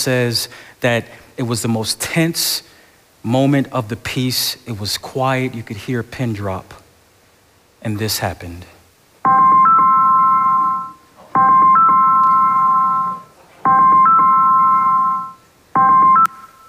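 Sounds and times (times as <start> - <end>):
speech: 0.0 - 6.8, 7.8 - 9.7
phone ringing: 9.3 - 16.6.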